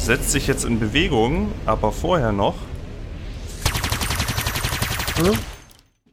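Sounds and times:
speech: 0.1 - 2.7, 5.2 - 5.5
rapid gunfire from a spaceship in a Starfinder role-playing game: 3.6 - 5.8.

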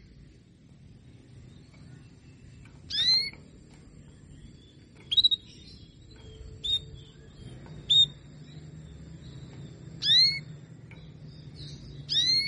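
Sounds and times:
Belgian canary calls: 2.8 - 3.5, 5.0 - 8.3, 9.5 - 12.4.

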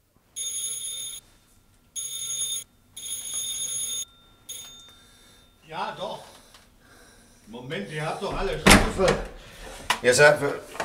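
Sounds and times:
doorbell ringing in a coded pattern: 0.4 - 1.4, 2.0 - 5.9
speech: 7.5 - 10.7.

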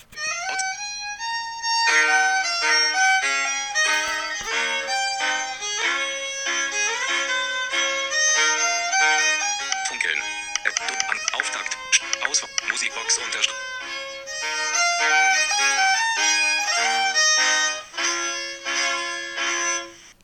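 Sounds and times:
mobile phone ringtone with synthetic melody: 0.2 - 20.1.

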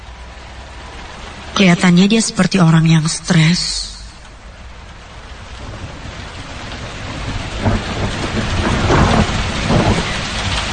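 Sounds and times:
heavy rain in Bandung: 0.0 - 10.7
speech: 1.6 - 3.9
thunder: 5.4 - 10.7.

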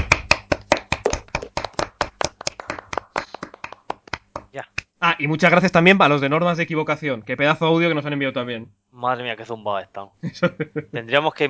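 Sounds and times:
small group applauding: 0.0 - 4.6
speech: 4.5 - 11.4.

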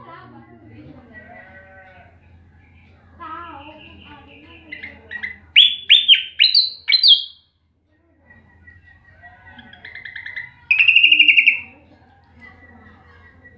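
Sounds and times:
flycatcher song: 3.3 - 7.5, 8.2 - 11.8.

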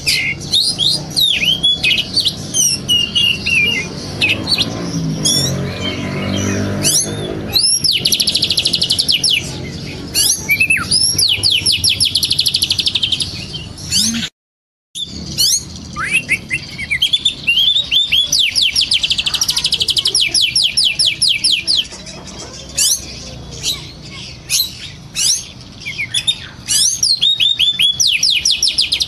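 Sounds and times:
oriental magpie-robin singing: 0.0 - 14.3, 15.0 - 29.0.

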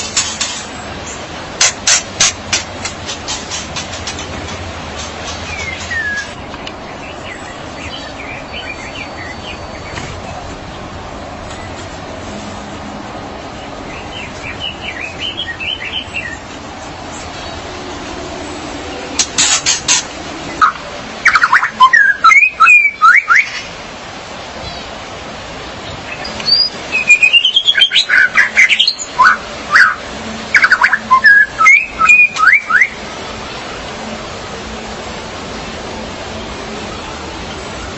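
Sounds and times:
magpie-robin or shama singing: 5.3 - 10.1, 13.9 - 16.4, 20.5 - 23.7, 26.1 - 33.0.

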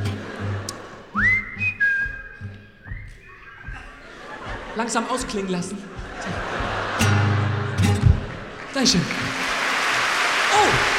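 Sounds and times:
laughter: 0.0 - 1.7, 3.1 - 10.9
soft low rhythmic accompaniment: 0.0 - 8.6
audience whistling a melody: 1.1 - 4.2
speech: 4.8 - 6.0, 8.8 - 9.2.

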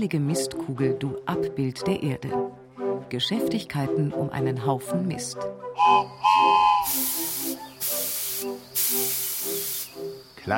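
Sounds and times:
speech: 0.0 - 7.2
small model steam locomotive hissing steam: 5.8 - 10.5.

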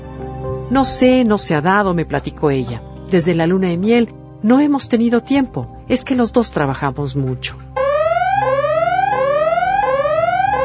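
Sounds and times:
speech: 0.7 - 7.6
loud electronic alarm repeating a rising whoop: 7.8 - 10.6.

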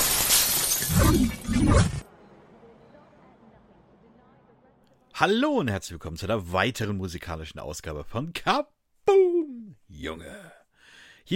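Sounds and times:
video game glass shattering as a character crashes through a window: 0.0 - 2.0
speech: 5.2 - 9.3, 10.0 - 10.5.

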